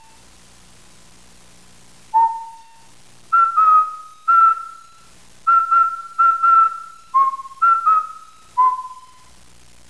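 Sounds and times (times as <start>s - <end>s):
person whistling: 2.2s - 4.9s, 5.5s - 9.3s.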